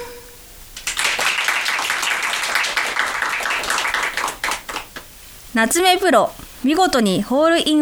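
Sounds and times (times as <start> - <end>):
audience applause: 0.8 - 5.1
speech: 5.6 - 7.7.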